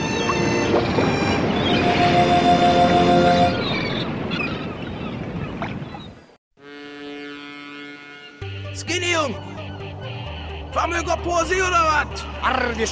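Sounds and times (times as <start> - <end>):
seagulls crying: 0.0 - 6.3, 8.0 - 11.0
wind and surf at the seaside: 0.0 - 6.4
speech: 9.2 - 9.5, 10.8 - 12.9.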